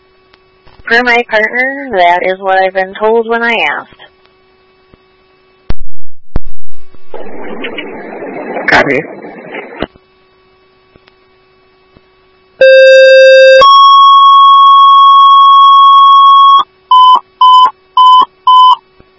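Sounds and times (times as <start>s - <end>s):
faint electrical hum: 0.0s - 19.1s
speech: 0.9s - 4.1s, 8.7s - 9.2s
fire dispatch alert tones: 12.6s - 18.8s
quick evenly spaced beeps: 14.6s - 18.8s.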